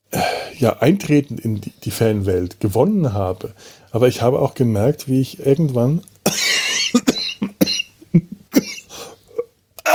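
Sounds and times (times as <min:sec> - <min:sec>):
speech: 0:00.6 - 0:07.1
person coughing after choking on something swallowed: 0:06.3 - 0:09.9.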